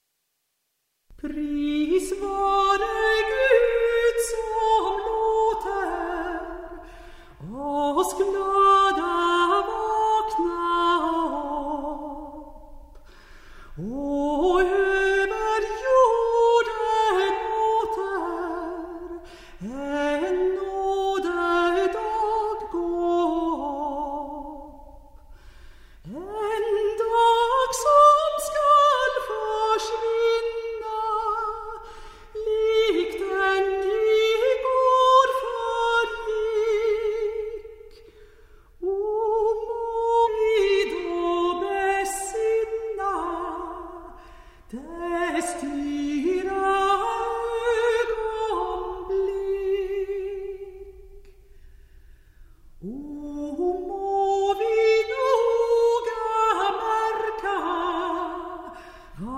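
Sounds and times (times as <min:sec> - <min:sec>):
traditional Swedish folk song: 0:01.1 - 0:59.3.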